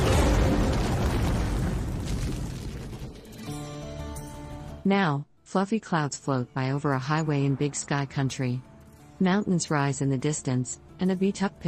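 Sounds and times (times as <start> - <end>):
film explosion at a tunnel exit: 0.0 - 3.4
speech: 4.8 - 11.6.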